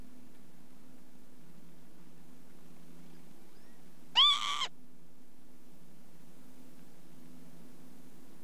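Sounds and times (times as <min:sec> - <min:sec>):
Northern Lapwing calls: 0:04.2 - 0:04.7.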